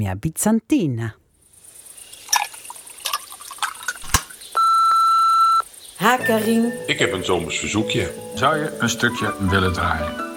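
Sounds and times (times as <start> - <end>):
speech: 0.0 - 1.2, 6.0 - 10.3
answering machine beep: 4.6 - 5.6.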